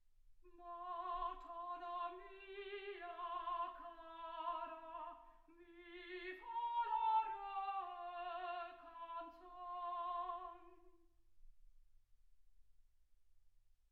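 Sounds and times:
soprano singing: 0.4s - 11.0s.

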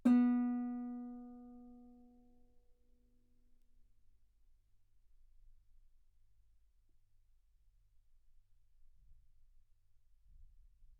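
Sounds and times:
guitar B3 note on B string played fortissimo: 0.0s - 1.8s.

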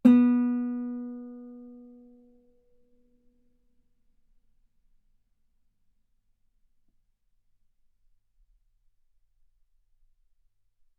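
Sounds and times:
loud guitar note on the B string: 0.0s - 2.0s.

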